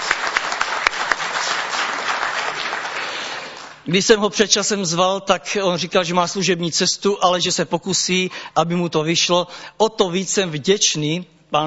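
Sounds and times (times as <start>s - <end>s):
audience applause: 0.0s - 3.8s
speech: 3.9s - 11.6s.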